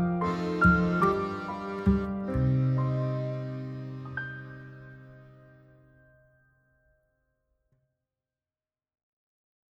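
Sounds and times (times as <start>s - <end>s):
French accordion waltz: 0.0s - 5.6s.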